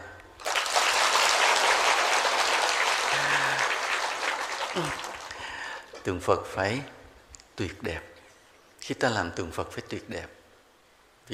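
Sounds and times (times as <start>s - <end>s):
audience applause: 0.4s - 5.7s
speech: 6.0s - 7.0s, 7.6s - 8.1s, 8.8s - 10.4s.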